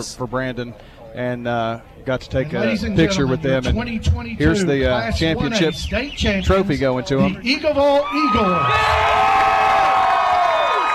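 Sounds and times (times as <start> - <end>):
speech: 0.0 - 9.4
crowd cheering: 7.7 - 10.9.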